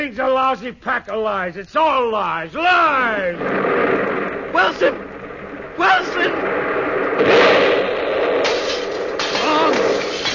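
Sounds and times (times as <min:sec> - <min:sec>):
speech: 0:00.0 - 0:05.1, 0:05.8 - 0:07.5
bomb explosion effect in a radio drama: 0:03.2 - 0:10.3.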